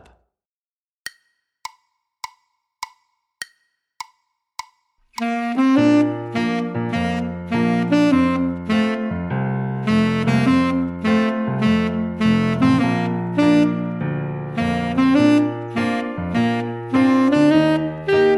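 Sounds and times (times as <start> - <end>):
tenor saxophone etude: 5.2 - 18.3.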